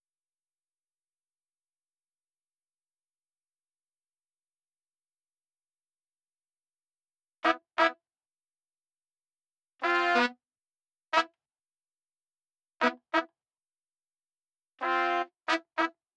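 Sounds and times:
horns: 7.4s - 8.0s, 9.8s - 10.4s, 12.8s - 13.3s, 14.8s - 16.0s.

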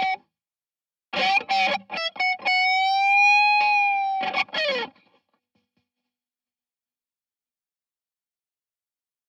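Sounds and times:
guitar improvisation: 0.0s - 0.2s, 1.2s - 5.2s.

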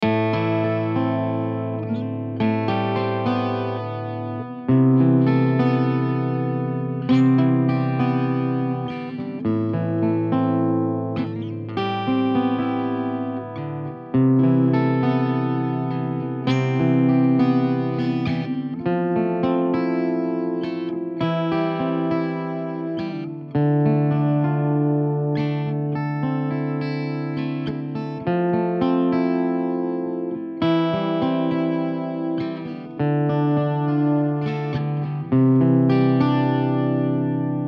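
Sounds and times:
blues music: 0.0s - 37.6s.

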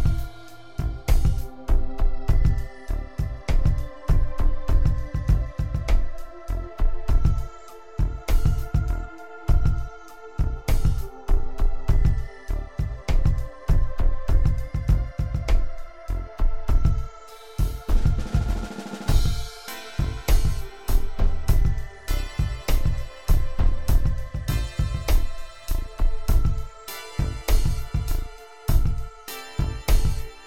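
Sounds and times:
A minor groove music at 100 bpm: 0.0s - 30.4s.

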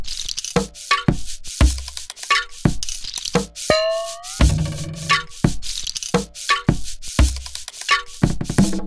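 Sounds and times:
beats: 0.6s - 8.6s.

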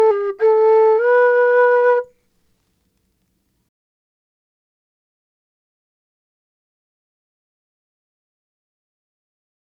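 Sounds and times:
dry whistle in E minor: 0.0s - 2.1s.

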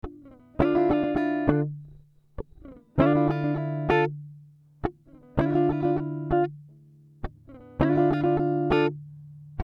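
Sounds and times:
guitar riffs in D minor at 100 BPM: 0.0s - 9.6s.

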